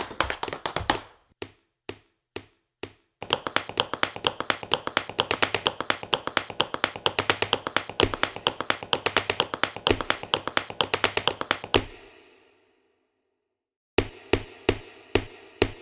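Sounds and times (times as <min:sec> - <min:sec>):
rhythm: 0:00.0 - 0:01.1, 0:03.2 - 0:12.0.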